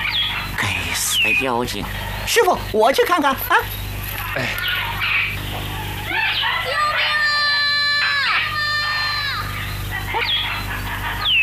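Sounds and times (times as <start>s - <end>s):
low steady hum: 0.0s - 11.4s
speech: 1.2s - 3.8s, 4.4s - 4.8s
child crying for help in a drama scene: 6.6s - 9.5s.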